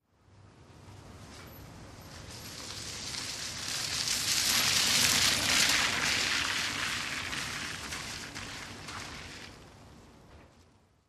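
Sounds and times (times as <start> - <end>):
car rolling slowly on wet pavement with engine off: 2.0 - 9.9.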